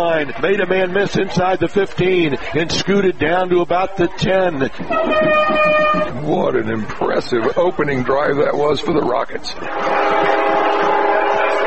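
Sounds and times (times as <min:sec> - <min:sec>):
speech: 0:00.0 - 0:10.2
laughter: 0:01.2 - 0:03.2, 0:04.0 - 0:07.2
train: 0:09.6 - 0:11.6.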